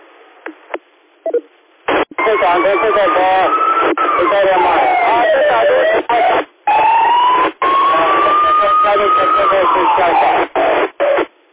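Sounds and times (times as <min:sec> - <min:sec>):
speech: 0:02.2 - 0:06.5, 0:09.0 - 0:10.4
ambulance siren through a thin tinny radio channel: 0:02.2 - 0:10.5.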